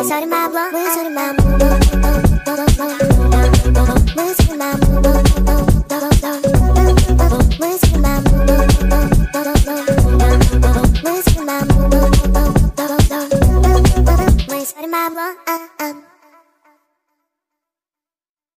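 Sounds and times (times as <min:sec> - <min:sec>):
sped-up music: 0:00.0 - 0:14.5.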